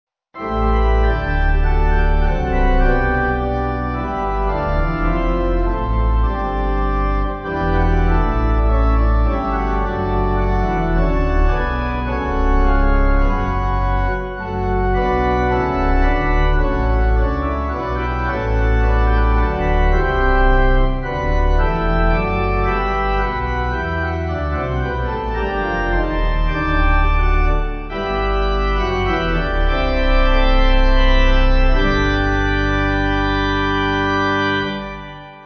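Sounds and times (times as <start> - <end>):
pipe organ: 0.4 - 35.4.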